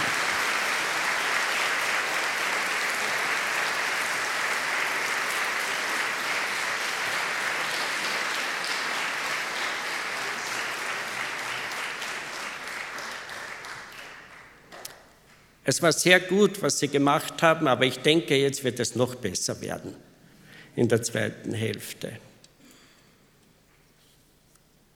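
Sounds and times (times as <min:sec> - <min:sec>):
audience applause: 0:00.0 - 0:14.6
speech: 0:15.7 - 0:20.1, 0:20.8 - 0:22.3.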